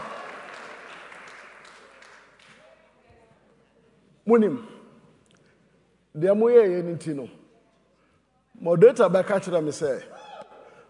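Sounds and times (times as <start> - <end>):
audience clapping: 0.0 - 2.7
speech: 4.3 - 4.8, 6.2 - 7.4, 8.6 - 10.2.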